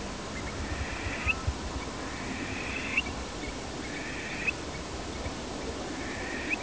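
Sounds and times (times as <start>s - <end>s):
Burhinus oedicnemus call: 0.4s - 5.3s, 5.9s - 6.6s.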